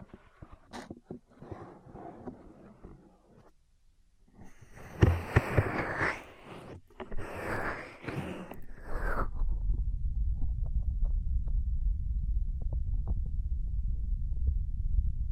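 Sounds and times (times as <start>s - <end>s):
ear cleaning scratchy rubbing: 4.5s - 9.3s
steady low rumble: 8.6s - 15.2s.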